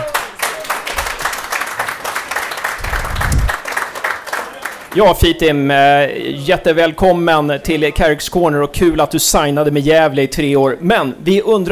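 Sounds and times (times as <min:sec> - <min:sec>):
audience applause: 0:00.0 - 0:05.0
low thump: 0:02.8 - 0:03.6
speech: 0:05.0 - 0:11.7.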